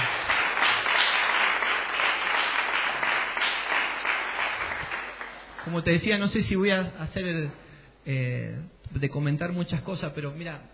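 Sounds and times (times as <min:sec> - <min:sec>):
audience applause: 0:00.0 - 0:05.8
speech: 0:05.7 - 0:10.7.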